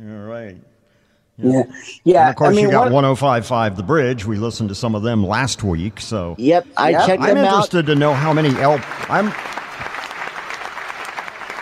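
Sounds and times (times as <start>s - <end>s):
speech: 1.4s - 9.6s
applause sound effect on a radio show: 7.5s - 11.6s.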